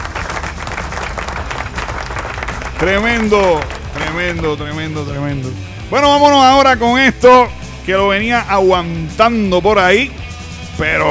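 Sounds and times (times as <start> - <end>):
applause: 0.0 - 4.7
speech: 2.8 - 10.2, 10.8 - 11.0.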